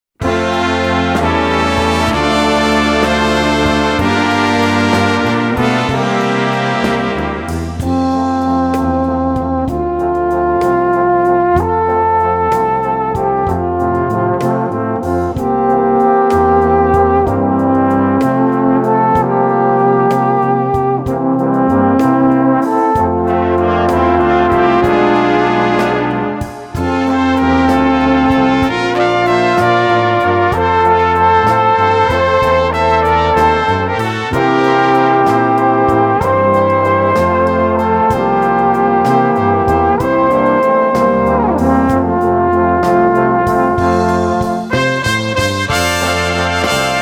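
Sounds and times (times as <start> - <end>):
alphorn playing a romance: 0.2 - 46.9.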